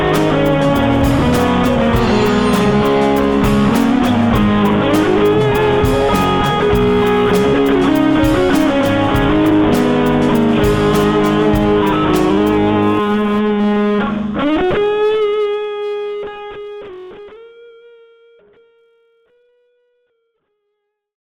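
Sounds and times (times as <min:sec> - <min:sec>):
guitar amplifier: 0:00.0 - 0:19.8.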